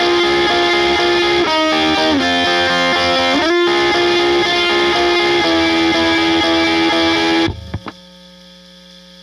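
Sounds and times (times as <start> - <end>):
chorus lead synth: 0.0 - 7.9.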